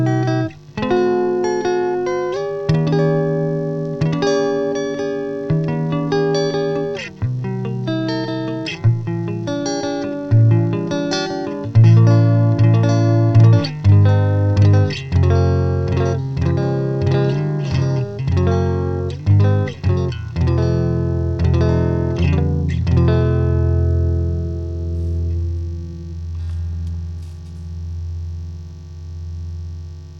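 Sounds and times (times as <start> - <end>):
electric guitar: 0.0 - 30.1.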